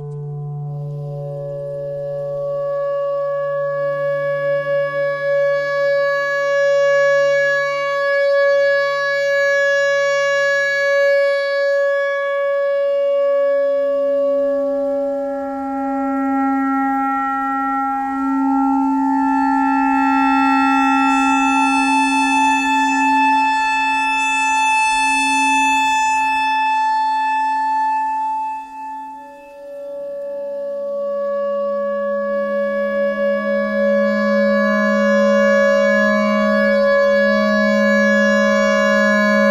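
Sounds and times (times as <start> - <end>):
E clarinet notes: 0.0 - 39.4
clarinet thread noise: 13.9 - 39.4.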